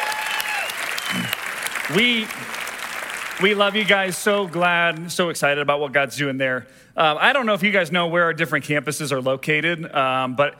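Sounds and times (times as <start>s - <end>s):
audience applause at a church service: 0.0s - 5.1s
speech: 1.1s - 2.6s, 3.4s - 10.5s.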